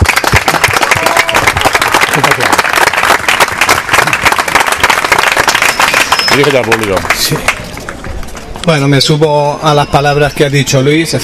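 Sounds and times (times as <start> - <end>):
audience applause: 0.0 - 8.4
speech: 6.4 - 7.6, 8.7 - 11.2.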